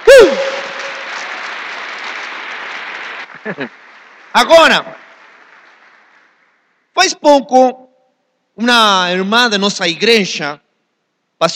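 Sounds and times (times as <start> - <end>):
brief cry from a voice: 0.0 - 0.7
audience applause: 0.0 - 6.9
speech: 3.4 - 3.8, 4.4 - 5.0, 7.0 - 7.8, 8.6 - 10.6, 11.4 - 11.5.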